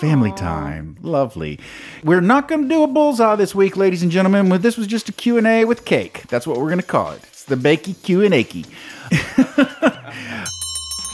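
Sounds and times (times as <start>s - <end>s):
laughter: 0.0s - 0.7s, 8.9s - 10.5s
speech: 0.0s - 10.6s
closing bell ringing: 9.4s - 11.1s.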